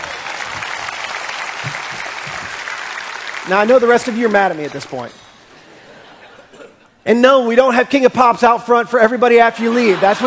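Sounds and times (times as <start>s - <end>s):
audience applause: 0.0s - 5.1s
speech: 3.4s - 5.2s, 7.0s - 10.2s
laughter: 5.6s - 7.0s, 9.5s - 10.2s.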